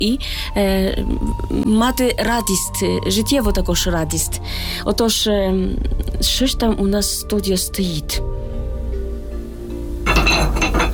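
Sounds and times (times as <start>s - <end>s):
speech: 0.0s - 8.5s
stones clinking together: 10.1s - 10.9s.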